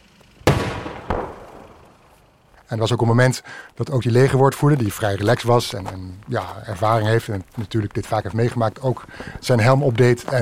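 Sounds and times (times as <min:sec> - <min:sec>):
distant tank battle gunfire and explosions: 0:00.5 - 0:01.9
speech: 0:02.7 - 0:10.3.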